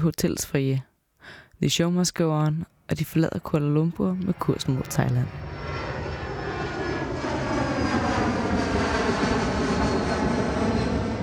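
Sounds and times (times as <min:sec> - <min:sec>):
speech: 0:00.0 - 0:05.9
aircraft engine roar of an airplane coming in to land: 0:04.1 - 0:11.2.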